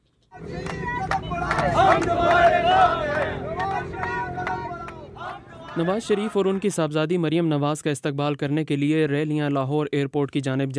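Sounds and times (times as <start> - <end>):
crowd of Muslim League supporters shouting in Lahore's old city: 0.3 - 6.8
speech: 5.8 - 10.7.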